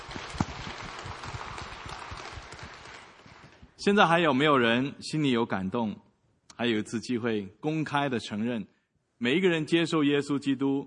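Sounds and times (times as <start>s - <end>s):
audience applauding: 0.0s - 3.8s
speech: 3.8s - 6.0s, 6.6s - 10.8s.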